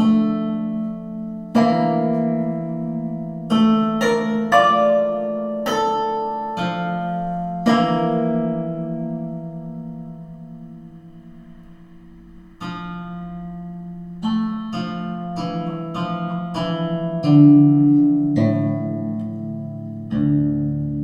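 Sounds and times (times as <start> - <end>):
hemitonic pentatonic scale example: 0.0 - 21.0.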